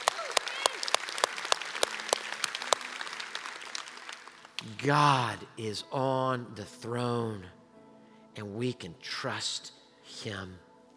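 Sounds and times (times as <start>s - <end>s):
cheers and whoops: 0.0s - 1.1s
audience clapping: 0.0s - 5.4s
speech: 4.6s - 7.6s, 8.4s - 10.7s.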